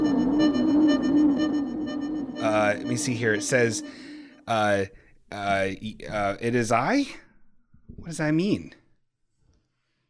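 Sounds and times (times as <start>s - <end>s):
warbling electronic sci-fi subspace message tone: 0.0s - 4.4s
speech: 2.6s - 7.2s, 8.0s - 8.8s.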